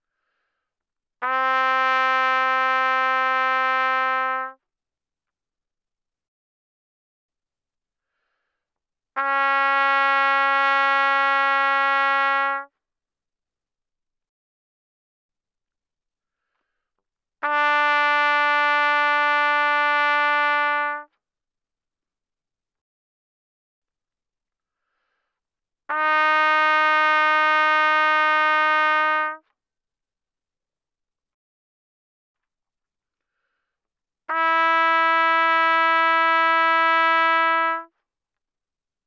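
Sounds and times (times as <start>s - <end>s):
trumpet notes C4 to B4 mezzo-forte without vibrato: 1.2s - 4.6s, 9.2s - 12.7s, 17.4s - 21.1s, 25.9s - 29.4s, 34.3s - 37.9s.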